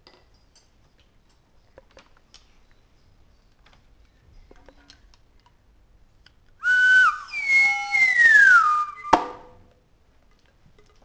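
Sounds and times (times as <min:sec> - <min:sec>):
parrot whistles: 0:06.6 - 0:09.4.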